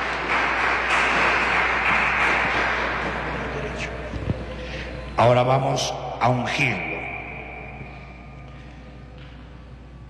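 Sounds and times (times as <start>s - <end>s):
crowd applause: 0.0s - 4.0s
speech: 5.2s - 7.0s.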